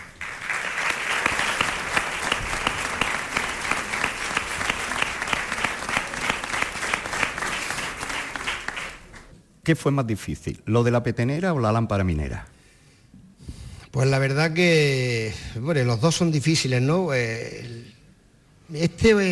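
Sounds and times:
audience applause: 0:00.0 - 0:09.3
speech: 0:09.7 - 0:12.5, 0:14.0 - 0:17.9, 0:18.7 - 0:19.3.

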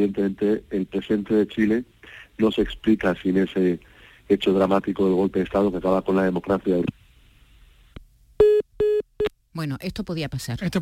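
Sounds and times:
speech: 0:00.0 - 0:07.0, 0:09.6 - 0:10.8
phone line beeps from a failed international call: 0:08.4 - 0:09.3.

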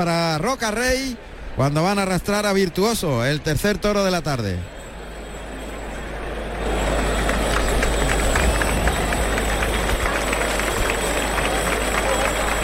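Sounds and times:
speech: 0:00.0 - 0:04.7
bullring crowd giving an ovation: 0:06.6 - 0:12.6.

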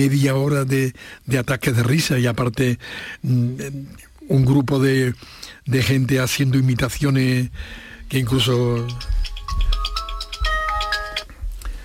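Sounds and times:
speech: 0:00.0 - 0:09.2
phone ringtone electronic melody: 0:08.6 - 0:11.4.

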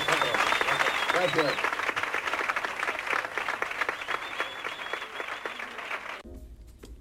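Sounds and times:
audience applause: 0:00.0 - 0:06.2
speech: 0:01.2 - 0:01.7.

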